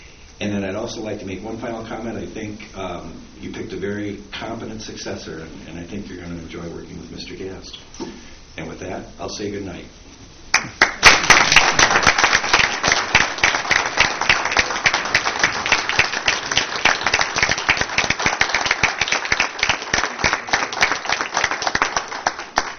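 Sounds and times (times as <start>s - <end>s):
speech: 0.4s - 11.2s
audience applause: 10.5s - 22.7s.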